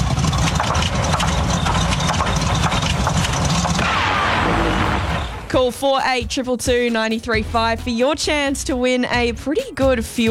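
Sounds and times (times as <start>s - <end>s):
song sputtering out like engine out of fuel: 1.0s - 5.9s
speech: 5.6s - 10.2s.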